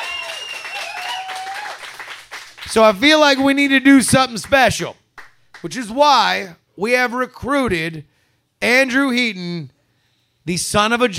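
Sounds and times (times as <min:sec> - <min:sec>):
whistles and cheers: 0:00.0 - 0:02.0
live audience applauding: 0:00.0 - 0:03.7
speech: 0:02.7 - 0:05.0, 0:05.6 - 0:09.8, 0:10.4 - 0:11.1.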